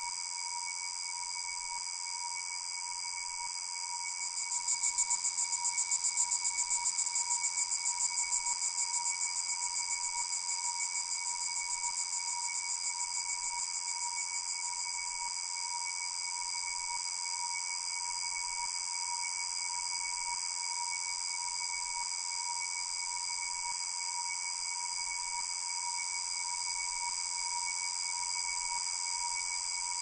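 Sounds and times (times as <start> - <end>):
faint cicada: 0.0 - 30.0.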